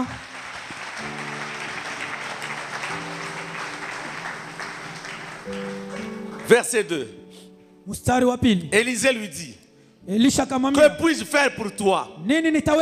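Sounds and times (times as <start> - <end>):
congregation applauding during a Sunday church worship service: 0.0 - 7.2
sustained keyboard chords: 0.2 - 11.8
speech: 6.5 - 7.2, 7.9 - 12.8.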